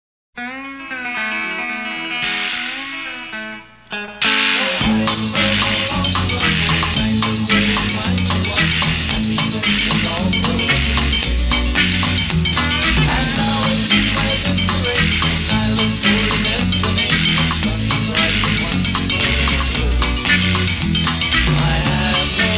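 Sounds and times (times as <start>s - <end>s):
karaoke singing: 0.8s - 22.5s.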